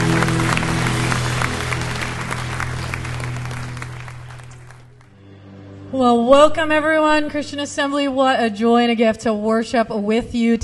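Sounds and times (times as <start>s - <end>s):
audience applauding: 0.0s - 5.2s
speech: 5.9s - 10.6s.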